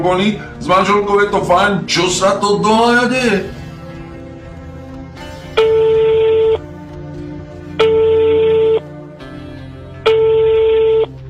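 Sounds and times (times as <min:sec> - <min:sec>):
speech: 0:00.0 - 0:03.6
telephone ringing tone: 0:05.6 - 0:06.7, 0:07.8 - 0:09.0, 0:10.0 - 0:11.2.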